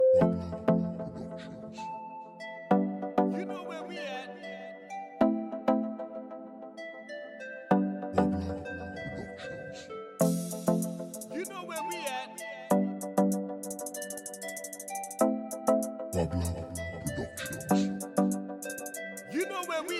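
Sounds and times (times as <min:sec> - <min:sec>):
Latin reggaeton music: 0:00.0 - 0:01.9, 0:02.8 - 0:04.7, 0:07.8 - 0:19.9.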